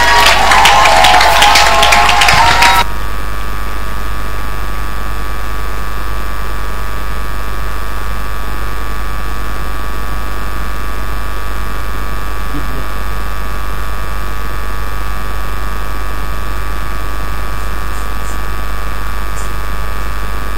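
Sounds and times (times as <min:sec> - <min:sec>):
audience clapping: 0:00.0 - 0:03.5
low electrical hum: 0:02.9 - 0:20.5.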